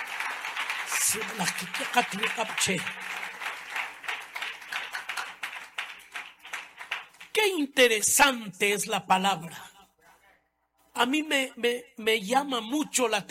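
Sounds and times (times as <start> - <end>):
crowd applause: 0.0 - 7.4
speech: 1.1 - 3.4, 7.4 - 9.7, 11.0 - 13.2.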